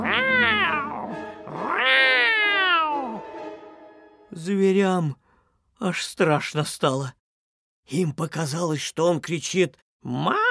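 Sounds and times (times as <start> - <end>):
cat growling and meowing while eating: 0.0 - 3.2, 10.1 - 10.4
speech: 4.4 - 5.2, 5.8 - 7.2, 7.9 - 10.4.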